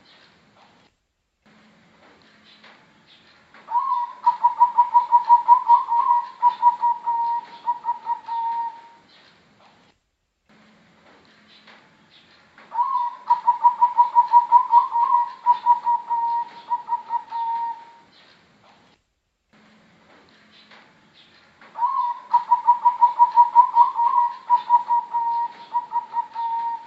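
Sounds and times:
Bangkok type zebra dove singing quick evenly pulsed coos: 3.7 - 9.0, 12.7 - 18.1, 21.8 - 26.8.

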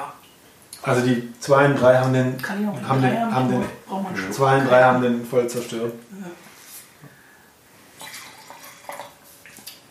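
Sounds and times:
speech: 0.8 - 6.5
cold wine pouring into a glass: 8.0 - 9.6.

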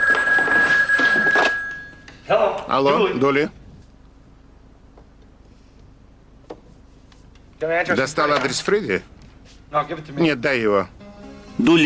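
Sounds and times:
telephone ringing: 0.0 - 2.1
speech: 2.3 - 3.6, 7.6 - 9.1, 9.7 - 11.0, 11.6 - 11.8.

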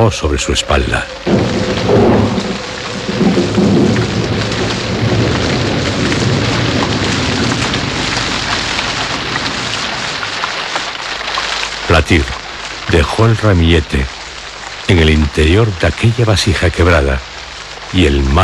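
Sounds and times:
speech: 0.0 - 2.4, 12.0 - 14.2, 14.9 - 17.3, 17.9 - 18.4
low rumbles of thunder: 0.0 - 18.4
steady dense rain pattering at night over a marble grave: 0.0 - 18.4.

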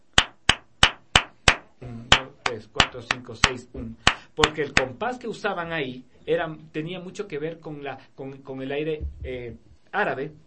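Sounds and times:
flamenco palmas hand claps: 0.1 - 5.0
speech: 2.6 - 10.4.

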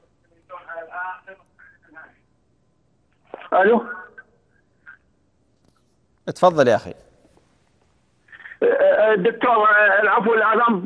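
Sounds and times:
television playing in background over phone: 0.0 - 2.4, 3.1 - 5.1, 8.2 - 10.8
speech: 0.8 - 2.3, 3.3 - 4.1, 6.3 - 7.0, 8.6 - 10.8.

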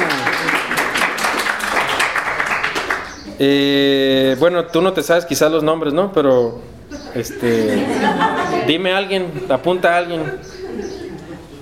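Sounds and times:
class applause: 0.0 - 3.2
speech: 3.4 - 10.6
laughter: 6.9 - 11.6.

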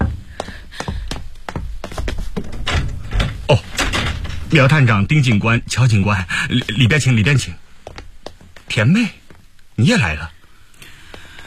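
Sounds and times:
door opening: 2.3 - 5.1
speech: 3.5 - 3.7, 4.5 - 7.6, 8.7 - 9.2, 9.8 - 10.4.

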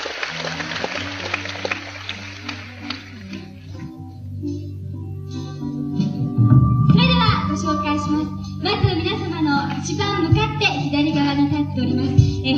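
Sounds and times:
audience applause at a concert: 0.0 - 3.7
sustained low instrumental notes: 2.8 - 11.5.

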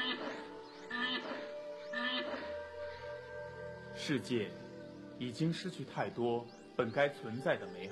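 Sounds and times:
West African black rhinoceros squealing calls: 0.0 - 2.6
speech: 4.0 - 4.6, 5.2 - 7.9.

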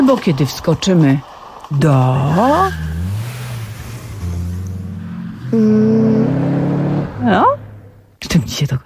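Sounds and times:
speech: 0.1 - 2.9, 5.5 - 6.0, 7.2 - 7.6, 8.3 - 8.8
motor engine revving and droning: 2.0 - 8.2.

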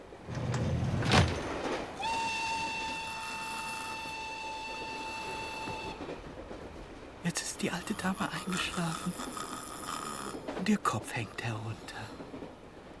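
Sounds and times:
train running on rails: 0.0 - 12.9
speech: 7.6 - 9.5, 10.6 - 12.2.

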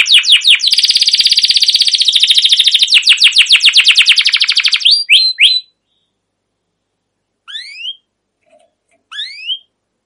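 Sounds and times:
canary song with trills, whistled notes and buzzy bursts: 0.0 - 9.8.

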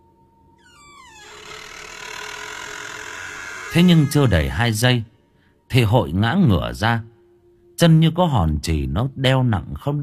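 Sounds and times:
door being gently pushed open: 0.6 - 4.6
speech: 3.7 - 5.1, 5.7 - 7.1, 7.8 - 10.0.

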